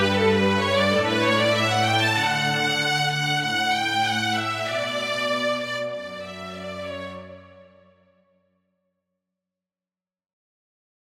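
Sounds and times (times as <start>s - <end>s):
cello playing a canon: 0.0s - 7.8s
violin playing a canon: 0.0s - 7.9s.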